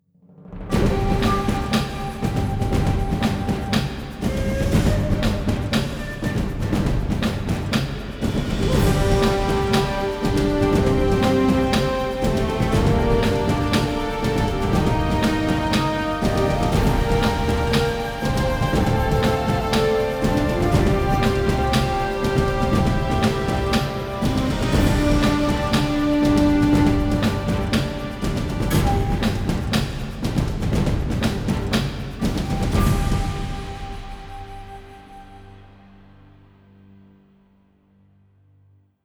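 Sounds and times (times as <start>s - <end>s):
Japanese victory music: 0.7s - 35.7s.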